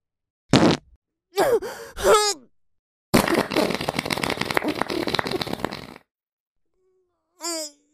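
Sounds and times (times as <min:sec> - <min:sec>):
fart: 0:00.5 - 0:00.8, 0:03.2 - 0:06.0.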